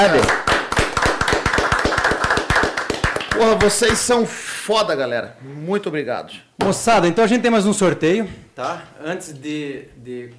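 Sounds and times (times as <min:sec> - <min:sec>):
speech: 0:00.0 - 0:00.5, 0:03.4 - 0:10.3
crowd applauding: 0:00.0 - 0:04.1.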